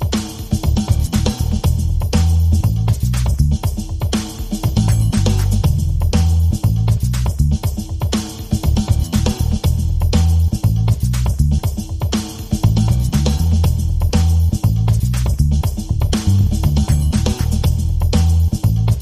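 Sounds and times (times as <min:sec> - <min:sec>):
percussion: 0:00.0 - 0:19.0
bass: 0:00.5 - 0:07.9, 0:08.6 - 0:11.9, 0:12.6 - 0:19.0.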